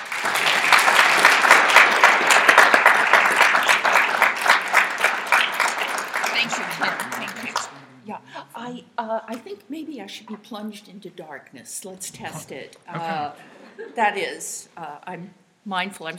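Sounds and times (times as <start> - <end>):
lecture audience applause welcoming a professor: 0.0 - 7.8
laughter: 6.2 - 7.9, 12.1 - 14.0
speech: 9.1 - 16.1.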